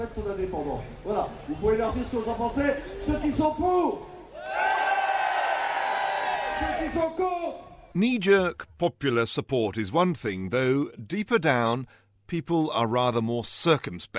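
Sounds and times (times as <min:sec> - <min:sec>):
speech: 0:00.0 - 0:04.6, 0:06.6 - 0:14.1
crowd cheering and shouting: 0:04.3 - 0:07.2.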